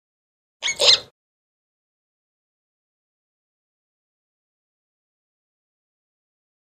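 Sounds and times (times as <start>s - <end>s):
monkey spider chirp: 0.6s - 1.1s.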